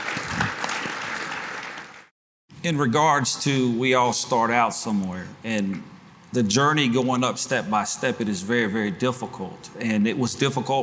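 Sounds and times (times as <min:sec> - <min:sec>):
slow clap: 0:00.0 - 0:02.1
speech: 0:02.6 - 0:10.8.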